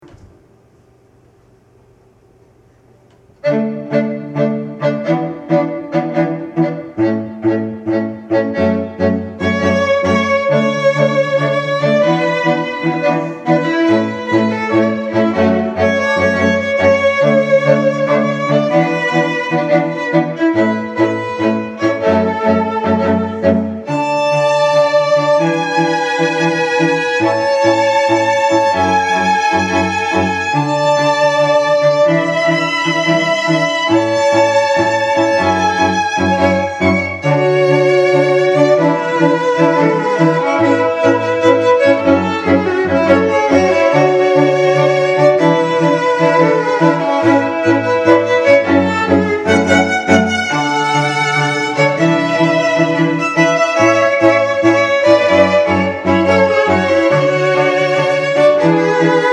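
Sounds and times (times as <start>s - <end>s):
string quartet: 3.4s - 59.3s.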